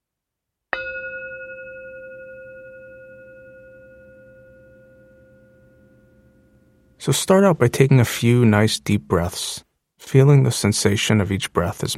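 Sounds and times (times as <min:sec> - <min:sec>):
meditation bell ringing: 0:00.8 - 0:06.9
speech: 0:07.0 - 0:11.9.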